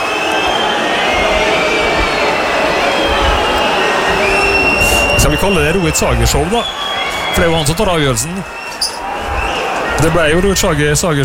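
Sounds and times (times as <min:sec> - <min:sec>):
stadium crowd roaring: 0:00.0 - 0:11.2
speech: 0:05.3 - 0:09.0, 0:10.0 - 0:11.2.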